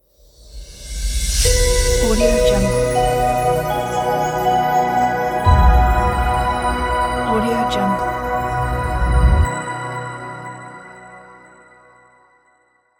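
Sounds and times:
logo opener jingle: 1.5s - 11.4s.

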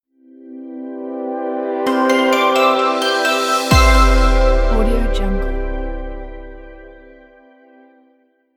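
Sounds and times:
logo intro sound: 1.9s - 7.2s.

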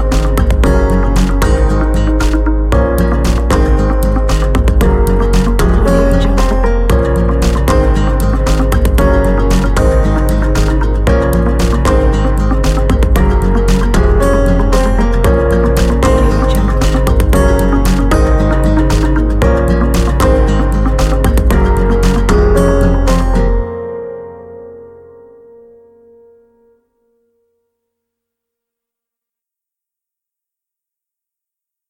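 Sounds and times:
upbeat acoustic energetic uplifting pop music: 0.0s - 24.0s.

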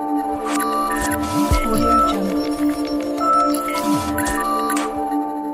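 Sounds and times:
tech logo jingle: 0.1s - 5.4s.

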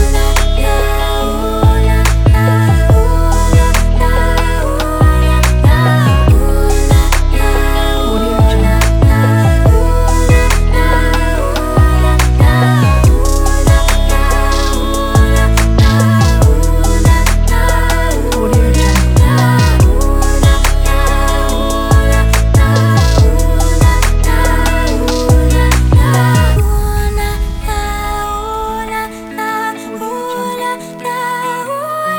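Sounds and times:
inspiring vocals and guitar over a beat: 0.0s - 32.1s.

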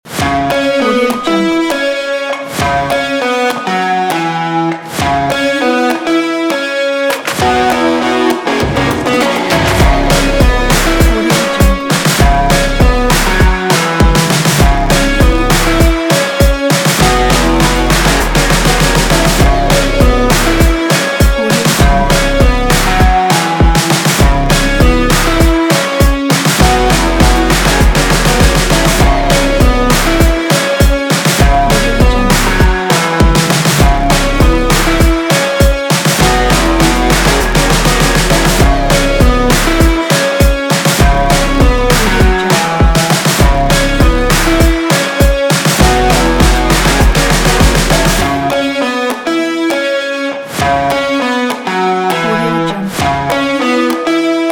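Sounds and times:
action indie rock music: 0.1s - 54.5s.

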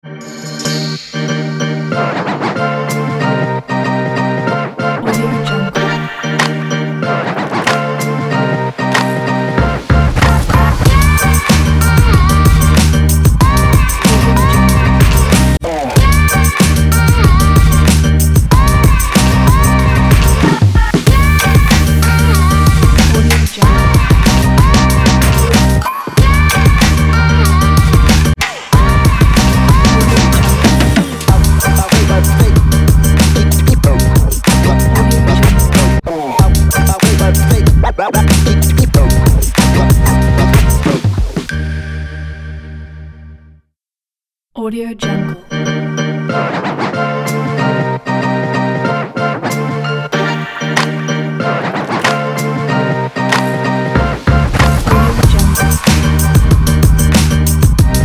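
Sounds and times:
hip hop music: 0.0s - 42.0s, 44.7s - 58.0s.

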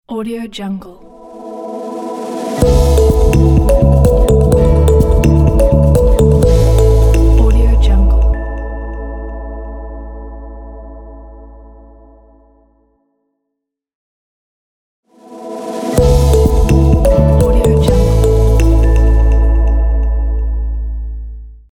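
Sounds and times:
news logo jingle: 1.0s - 10.4s, 15.2s - 20.5s.

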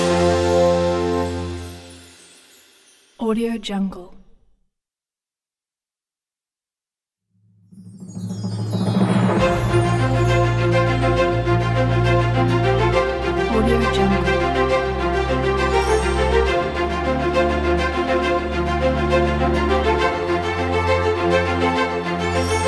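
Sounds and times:
epic award ceremony winner music: 0.0s - 2.2s, 7.8s - 22.6s.

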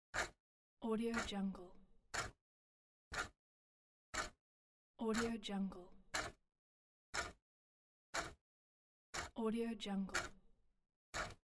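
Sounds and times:
clock ticking: 0.2s - 0.4s, 1.1s - 1.4s, 2.1s - 2.4s, 3.1s - 3.4s, 4.1s - 4.4s, 5.1s - 5.4s, 6.1s - 6.4s, 7.1s - 7.4s, 8.1s - 8.4s, 9.1s - 9.4s, 10.1s - 10.4s, 11.1s - 11.4s.

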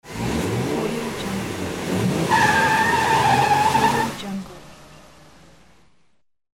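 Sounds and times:
car peeling out: 0.1s - 5.8s.

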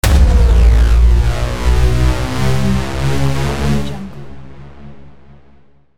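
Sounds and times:
dubstep hit transition: 0.0s - 4.8s.

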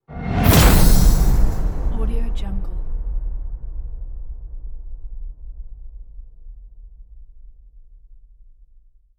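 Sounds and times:
cinematic hit: 0.1s - 6.5s.

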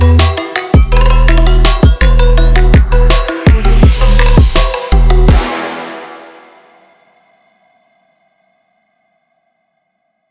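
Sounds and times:
trap beat: 0.0s - 6.1s.

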